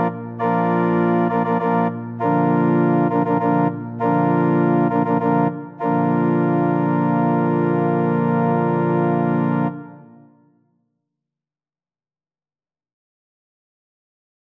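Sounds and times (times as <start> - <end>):
organ pedal notes: 0.0 - 10.2.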